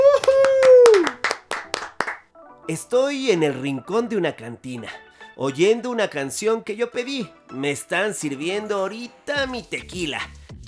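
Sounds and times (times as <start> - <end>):
applause: 0.0 - 2.3
speech: 2.7 - 10.6.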